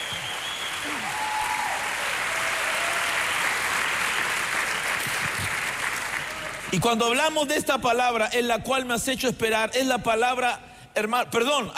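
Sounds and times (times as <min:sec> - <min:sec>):
audience applause: 0:00.0 - 0:06.8
speech: 0:06.7 - 0:11.7.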